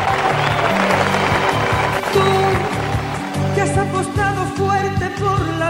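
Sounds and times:
audience clapping: 0.0 - 4.6
pulsing bass beat: 0.1 - 5.6.

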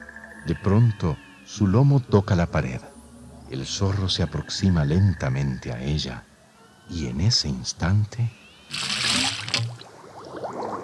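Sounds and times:
speech: 0.4 - 2.9, 3.5 - 6.3, 6.9 - 9.7
jet of water gushing out of a pipe: 8.7 - 10.8.

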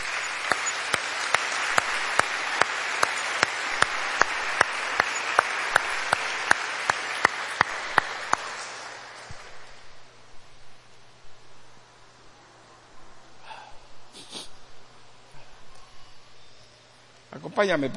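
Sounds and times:
audience applauding: 0.0 - 10.1.

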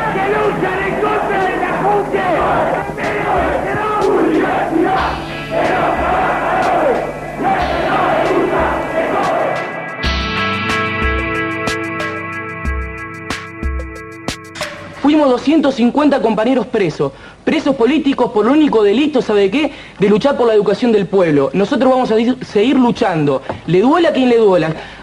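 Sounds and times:
protest crowd cheering and chanting: 0.0 - 11.3
pounding drumbeat: 0.0 - 15.2
sustained brassy tones: 0.0 - 15.2
speech: 0.5 - 3.5, 15.4 - 25.0.

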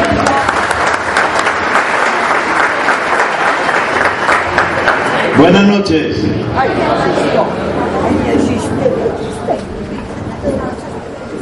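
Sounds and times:
audience applause: 0.0 - 5.5
scattered voices: 5.0 - 11.4
speech: 5.4 - 8.4.

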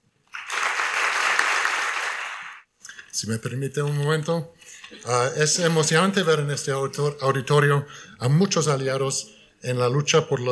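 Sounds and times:
audience applause: 0.3 - 2.7
speech: 3.2 - 10.4.

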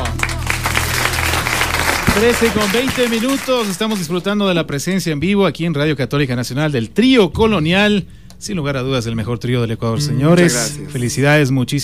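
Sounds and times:
applause: 0.0 - 4.5
speech: 2.2 - 11.8.

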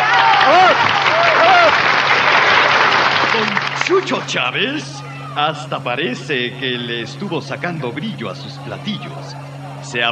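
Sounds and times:
applause: 0.0 - 4.3
speech: 3.4 - 10.1.

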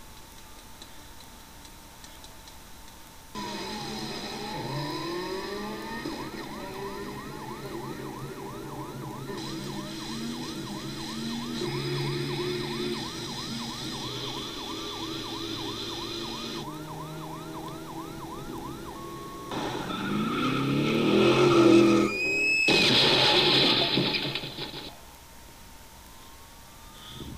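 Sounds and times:
radio music without words: 3.4 - 25.0.

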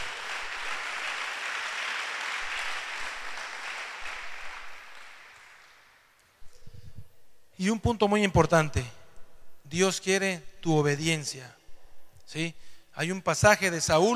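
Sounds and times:
audience applauding loudly: 0.0 - 6.2
speech: 7.6 - 9.0, 9.7 - 11.6, 12.3 - 14.1.

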